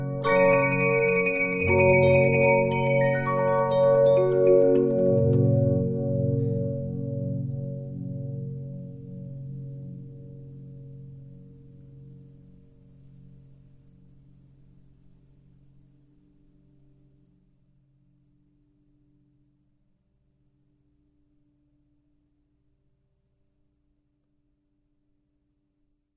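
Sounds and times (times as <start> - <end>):
Regina 15-inch disc music box: 0.0 - 6.9.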